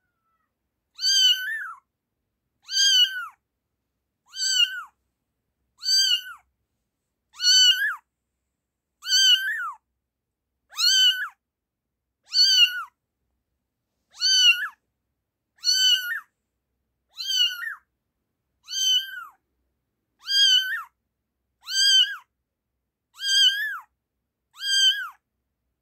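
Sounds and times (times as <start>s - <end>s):
kitten meowing: 0.1s - 1.8s, 2.6s - 3.4s, 4.3s - 5.0s, 5.8s - 6.5s, 7.4s - 8.0s, 9.0s - 9.8s, 10.7s - 11.4s, 12.3s - 13.0s, 14.1s - 14.8s, 15.6s - 16.3s, 17.1s - 17.9s, 18.6s - 19.4s, 20.2s - 21.0s, 21.6s - 22.3s, 23.1s - 23.9s, 24.5s - 25.2s.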